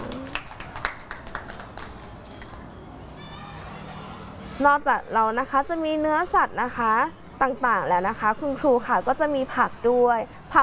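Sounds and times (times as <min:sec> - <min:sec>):
children clapping for a classmate: 0:00.0 - 0:02.7
speech: 0:04.6 - 0:10.6.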